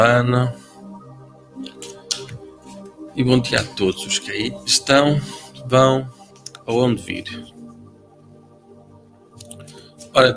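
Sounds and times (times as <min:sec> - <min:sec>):
speech: 0:00.0 - 0:00.6, 0:03.2 - 0:07.6, 0:10.1 - 0:10.3
card drawn from a deck: 0:01.7 - 0:02.4.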